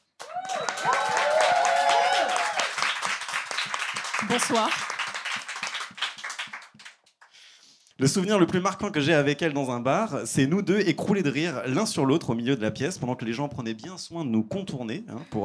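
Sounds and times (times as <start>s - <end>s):
audience applause and clapping: 0.0s - 7.4s
speech: 4.2s - 4.9s, 8.0s - 15.4s.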